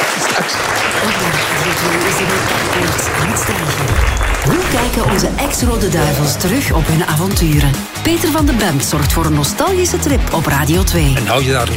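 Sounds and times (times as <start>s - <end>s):
thunderous applause: 0.0s - 9.4s
speech: 0.4s - 11.7s.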